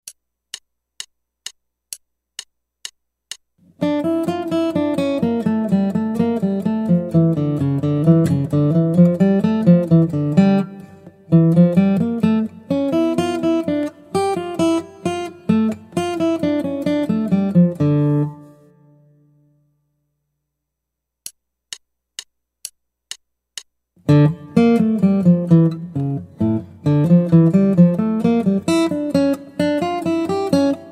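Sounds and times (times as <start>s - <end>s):
guitar: 3.6s - 19.7s, 24.0s - 30.8s.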